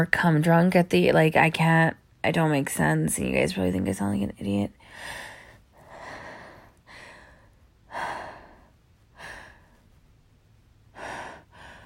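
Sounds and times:
speech: 0.0s - 5.2s
heavy labored breathing from someone out of breath: 4.8s - 9.9s, 10.9s - 11.8s.

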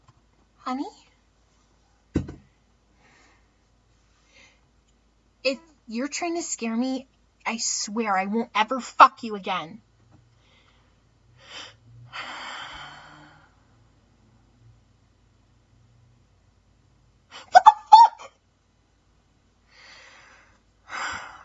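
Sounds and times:
speech: 0.7s - 1.1s, 5.5s - 9.9s
heavy breathing: 10.4s - 13.8s, 19.7s - 21.4s.

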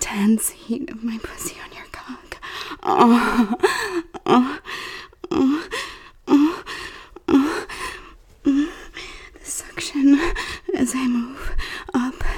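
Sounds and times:
speech: 0.1s - 1.7s, 2.8s - 4.6s
breathing and panting: 2.4s - 9.4s, 10.0s - 12.3s.

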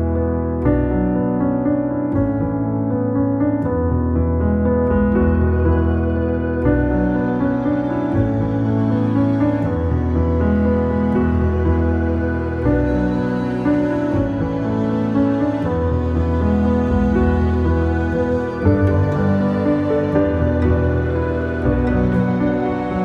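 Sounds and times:
instrumental ambient music: 0.0s - 23.0s.

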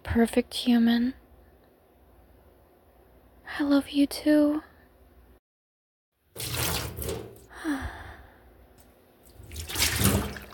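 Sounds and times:
speech: 0.2s - 1.2s, 3.5s - 4.7s
bath water sloshing: 6.4s - 7.5s, 9.3s - 10.5s.

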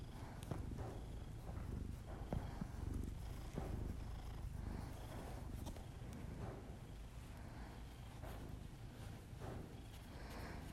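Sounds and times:
domestic cat purring: 0.0s - 10.7s.

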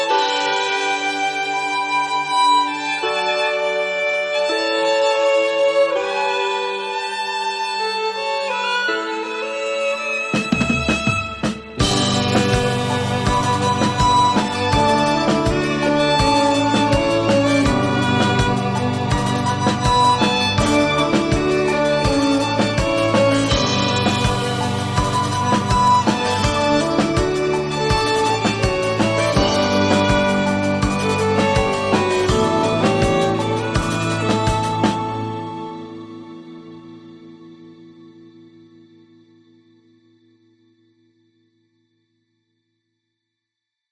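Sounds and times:
violins: 0.0s - 37.6s
guitar: 0.0s - 41.4s
drums: 10.3s - 35.8s.

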